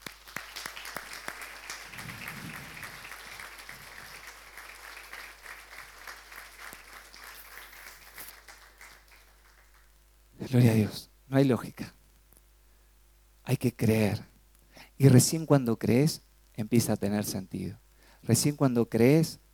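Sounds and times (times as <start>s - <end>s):
audience applauding: 0.0s - 10.0s
speech: 10.5s - 12.0s, 13.5s - 14.3s, 15.0s - 19.4s.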